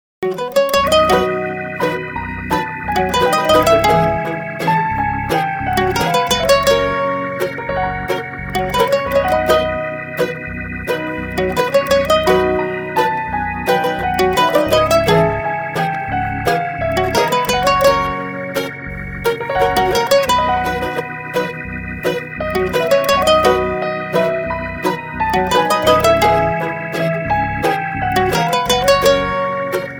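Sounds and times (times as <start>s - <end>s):
instrumental music: 0.2s - 29.9s.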